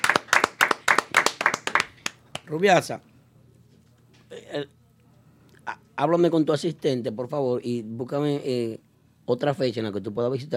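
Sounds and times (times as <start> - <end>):
small group applauding: 0.0 - 2.6
speech: 2.5 - 3.1, 4.5 - 4.8, 5.7 - 10.5.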